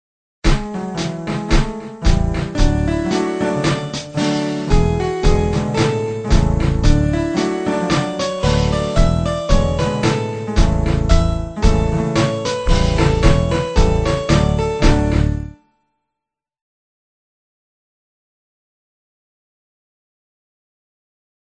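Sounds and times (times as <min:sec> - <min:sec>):
backing track: 0:00.5 - 0:15.6.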